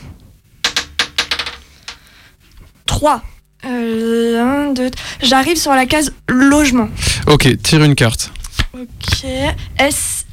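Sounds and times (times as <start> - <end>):
die rolled on a game board: 0.6 - 2.1
speech: 3.0 - 10.3.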